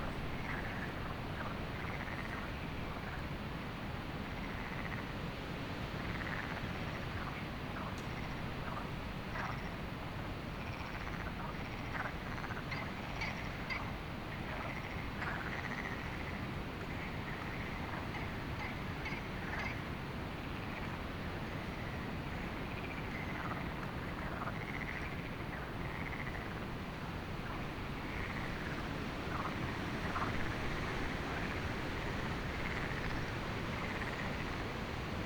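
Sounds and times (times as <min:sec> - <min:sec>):
frogs calling at night: 0:00.0 - 0:03.2, 0:10.6 - 0:26.7, 0:27.3 - 0:35.0
wind at night: 0:00.0 - 0:35.2.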